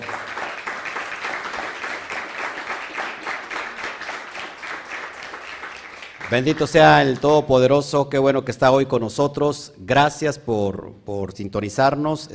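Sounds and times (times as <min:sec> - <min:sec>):
audience applause: 0:00.0 - 0:07.2
speech: 0:06.3 - 0:12.3.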